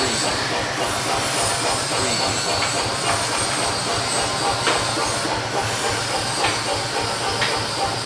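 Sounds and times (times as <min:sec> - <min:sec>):
blacksmith forge ambience: 0:00.0 - 0:08.0.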